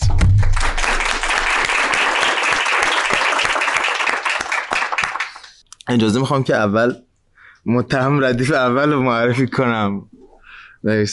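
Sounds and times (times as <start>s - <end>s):
audience applause welcoming a writer to the stage at a talk event: 0.0s - 5.6s
speech: 5.9s - 10.2s, 10.8s - 11.1s.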